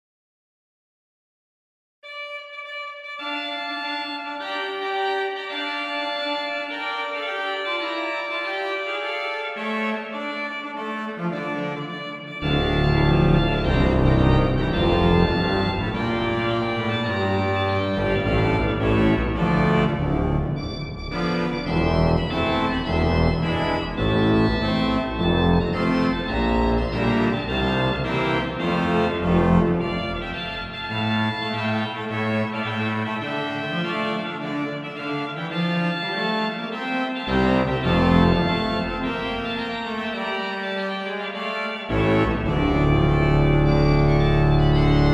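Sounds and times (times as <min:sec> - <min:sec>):
organ music: 0:02.0 - 0:45.1.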